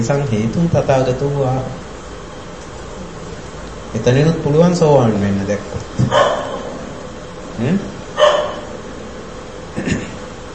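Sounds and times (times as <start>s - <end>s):
speech: 0.0s - 1.8s, 3.9s - 6.5s, 7.6s - 8.3s
dog barking: 6.1s - 6.9s, 8.2s - 8.7s.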